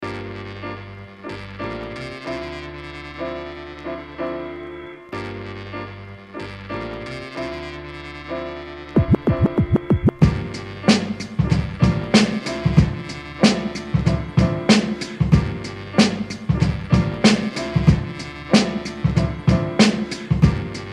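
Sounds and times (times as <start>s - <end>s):
music beat: 9.0s - 20.9s.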